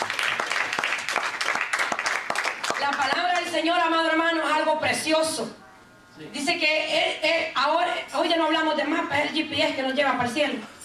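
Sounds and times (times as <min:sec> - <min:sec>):
congregation clapping during a church service: 0:00.0 - 0:03.5
speech: 0:02.9 - 0:05.6, 0:06.2 - 0:10.7.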